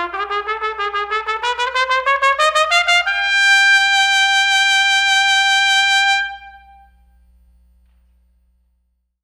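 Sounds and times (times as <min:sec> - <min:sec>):
trumpet: 0:00.0 - 0:07.3.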